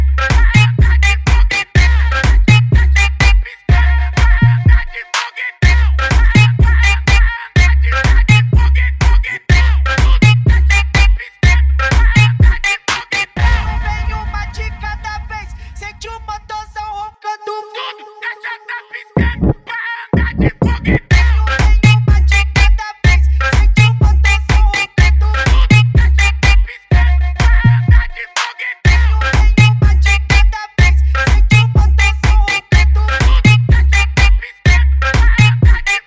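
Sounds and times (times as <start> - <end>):
mega funk automotivo music: 0.0 - 4.9, 5.6 - 14.9, 20.2 - 27.7, 28.9 - 36.0.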